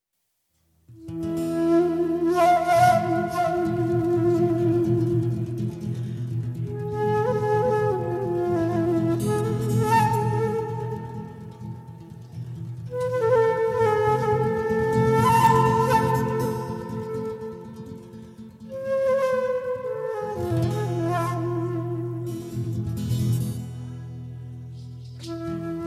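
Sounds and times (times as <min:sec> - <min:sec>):
instrumental folk tune: 0:00.6 - 0:25.8.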